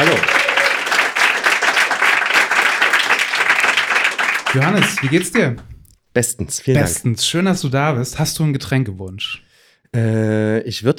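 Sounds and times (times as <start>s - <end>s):
crowd applauding: 0.0s - 5.6s
speech: 4.5s - 10.9s.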